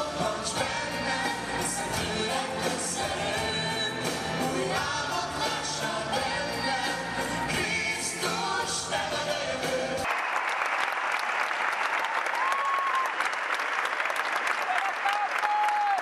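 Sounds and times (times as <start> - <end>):
music: 0.0 - 10.1
arena crowd applauding and cheering: 9.9 - 16.0.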